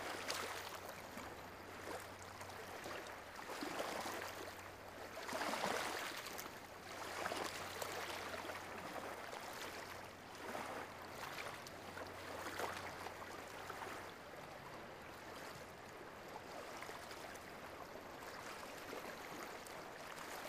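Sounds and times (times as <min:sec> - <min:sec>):
small sea waves: 0:00.0 - 0:20.4.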